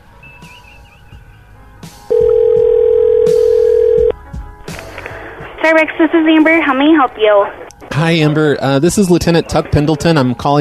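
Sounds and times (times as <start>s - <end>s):
telephone dial tone on a call routed through a Cape Canaveral phone link: 2.1s - 4.1s
low noise: 2.1s - 8.9s
speech: 5.6s - 10.5s.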